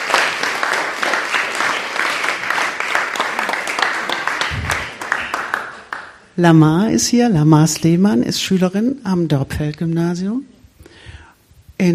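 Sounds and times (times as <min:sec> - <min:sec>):
audience clapping: 0:00.0 - 0:06.4
speech: 0:06.4 - 0:10.5, 0:11.8 - 0:11.9.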